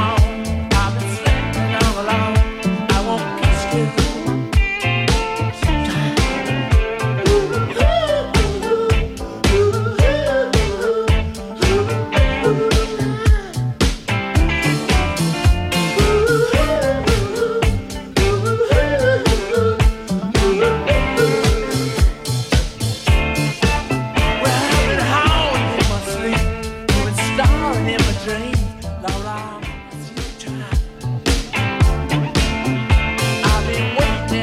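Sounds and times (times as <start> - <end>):
70s drum machine beat: 0.0 - 34.4.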